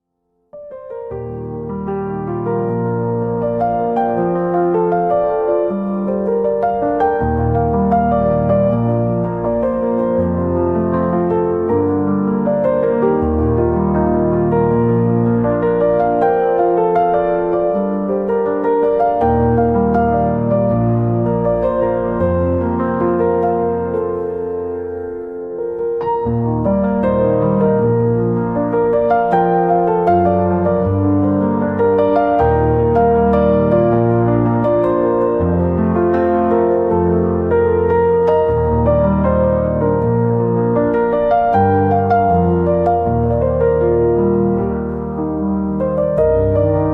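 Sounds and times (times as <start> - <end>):
piano: 0.0 - 46.9.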